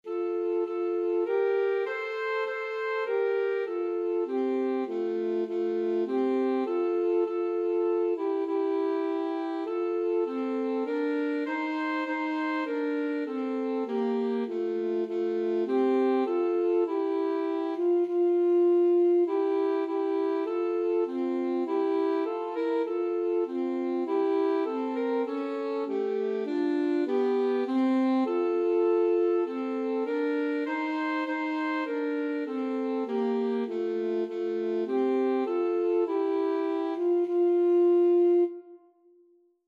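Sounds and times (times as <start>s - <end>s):
alto saxophone: 0.0s - 39.2s.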